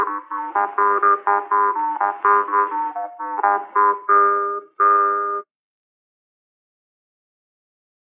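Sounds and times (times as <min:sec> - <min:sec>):
folk music: 0:00.0 - 0:05.4.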